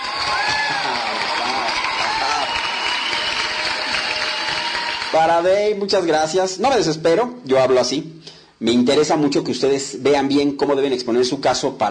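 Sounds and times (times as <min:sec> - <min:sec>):
audience applause: 0:00.0 - 0:05.4
faint voices and cheers: 0:00.0 - 0:05.4
speech: 0:05.2 - 0:11.8.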